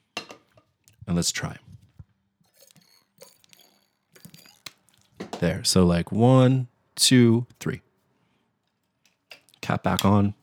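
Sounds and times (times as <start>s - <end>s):
speech: 1.1s - 1.7s, 5.4s - 7.8s, 9.7s - 10.4s
water sloshing in shaken plastic water bottle: 2.5s - 5.4s.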